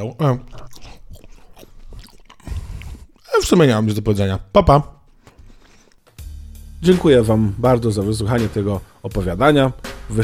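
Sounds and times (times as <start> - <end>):
speech: 0.0 - 0.8, 3.5 - 5.0, 6.8 - 10.2
person biting into and chewing a chocolate: 0.0 - 4.4.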